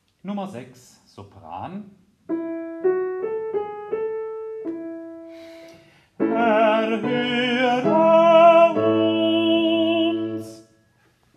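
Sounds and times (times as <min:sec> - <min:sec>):
soprano voice: 0:06.2 - 0:10.6.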